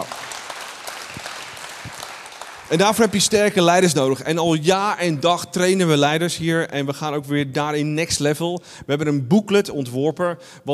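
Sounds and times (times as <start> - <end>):
crowd applause: 0.0 - 3.9
speech: 2.7 - 10.7.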